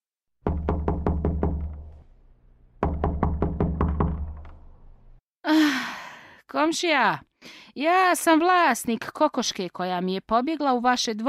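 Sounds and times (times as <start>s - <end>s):
knuckles knocking on a wooden door: 0.4s - 2.0s, 2.8s - 4.8s
speech: 6.5s - 11.2s.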